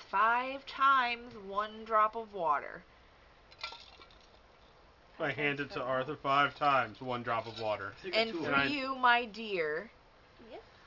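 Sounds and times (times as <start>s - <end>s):
speech: 0.1s - 2.9s, 5.2s - 10.7s
fragile glass jars clinking in a bag: 6.5s - 7.8s.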